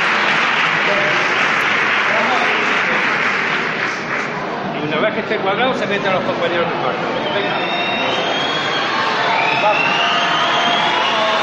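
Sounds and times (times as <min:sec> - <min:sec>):
large crowd applauding: 0:00.0 - 0:04.7, 0:07.4 - 0:11.4
speech: 0:05.2 - 0:07.9.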